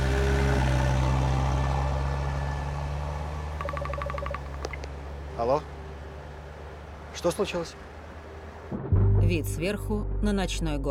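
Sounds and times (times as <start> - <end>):
car driving off from a parking lot: 0.0 - 9.2
high electronic beeps: 3.6 - 4.8
speech: 5.4 - 5.7, 7.2 - 7.9, 9.3 - 10.9.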